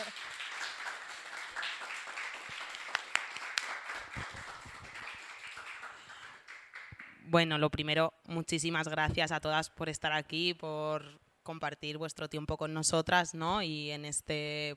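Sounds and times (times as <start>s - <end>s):
audience applause: 0.0s - 7.1s
speech: 7.3s - 14.7s.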